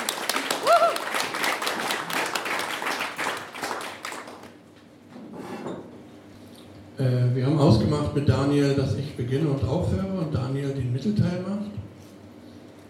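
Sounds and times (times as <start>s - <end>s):
audience applause: 0.0s - 4.6s
speech: 7.0s - 11.7s.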